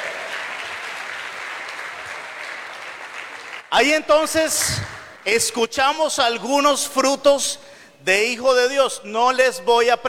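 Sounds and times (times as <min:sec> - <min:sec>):
audience applause: 0:00.0 - 0:03.8
speech: 0:03.7 - 0:10.0.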